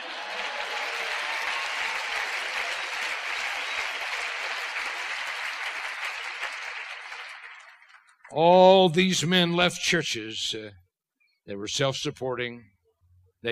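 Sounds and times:
audience applause: 0:00.0 - 0:08.4
speech: 0:08.4 - 0:10.8, 0:11.5 - 0:12.7.

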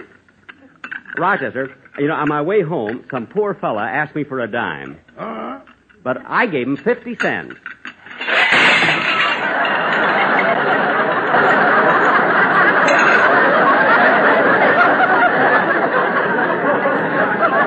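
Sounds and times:
stack of dishes crashing off drain board: 0:00.0 - 0:03.6, 0:06.6 - 0:15.7
speech: 0:01.2 - 0:05.3, 0:06.0 - 0:07.8
loud sustained laughter: 0:08.3 - 0:17.6.

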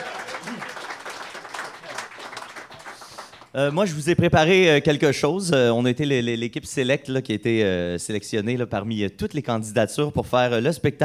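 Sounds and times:
crowd applause: 0:00.0 - 0:03.5
speech: 0:03.6 - 0:11.0.

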